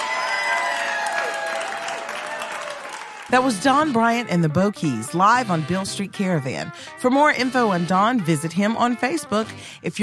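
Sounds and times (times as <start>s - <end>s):
audience applause after live performance: 0.0s - 3.3s
speech: 3.3s - 10.0s.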